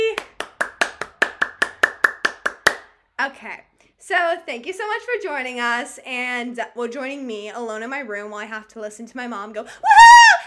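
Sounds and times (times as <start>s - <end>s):
clapping: 0.1s - 2.9s
speech: 3.3s - 10.3s.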